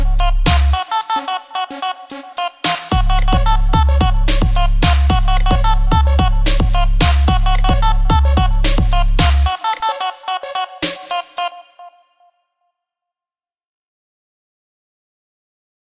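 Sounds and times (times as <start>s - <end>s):
full drum kit loop: 0.0s - 11.6s.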